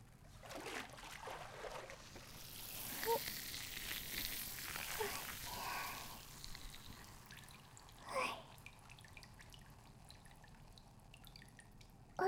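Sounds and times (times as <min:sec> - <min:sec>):
water pouring and splashing, rinsing away foam: 0:00.3 - 0:12.1.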